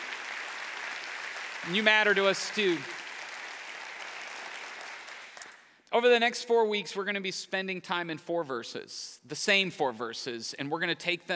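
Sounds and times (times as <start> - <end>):
church congregation applause welcoming online viewers: 0.0 - 5.7
speech: 1.6 - 3.0, 6.0 - 11.3.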